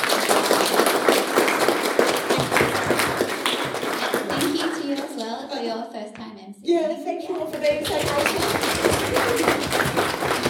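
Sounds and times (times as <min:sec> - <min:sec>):
round of applause: 0:00.0 - 0:05.3, 0:07.4 - 0:10.4.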